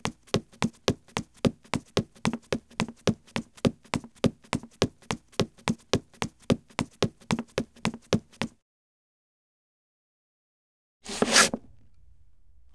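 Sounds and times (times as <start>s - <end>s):
jogging footsteps on wood: 0.0s - 8.6s.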